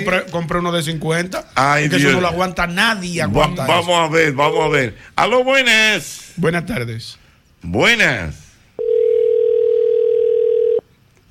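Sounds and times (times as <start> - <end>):
speech: 0.0 - 8.4
telephone tone after dropped call: 8.8 - 10.9.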